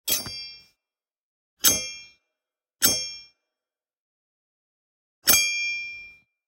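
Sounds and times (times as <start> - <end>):
sword sound: 0.0 - 0.7, 1.6 - 2.2, 2.8 - 3.3.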